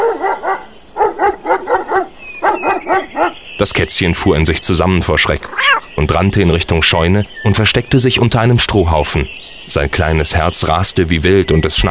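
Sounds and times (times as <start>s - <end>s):
farm dog barking: 0.0s - 3.4s
speech: 3.6s - 11.8s.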